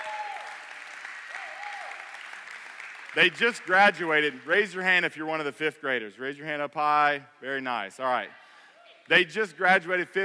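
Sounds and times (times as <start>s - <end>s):
audience cheering: 0.0s - 3.8s
audience applause: 0.0s - 4.8s
speech: 3.1s - 8.4s, 9.1s - 10.2s.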